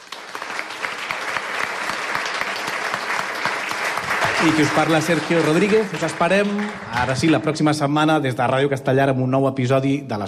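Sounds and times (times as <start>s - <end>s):
live audience applauding: 0.0s - 7.8s
speech: 4.4s - 10.2s.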